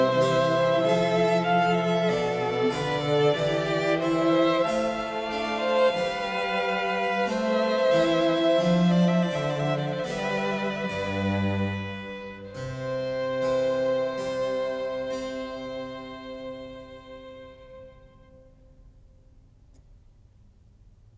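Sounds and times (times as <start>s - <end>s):
basso continuo playing a trio sonata in C major: 0.0s - 18.8s
two violins playing a trio sonata in C major: 0.0s - 18.8s.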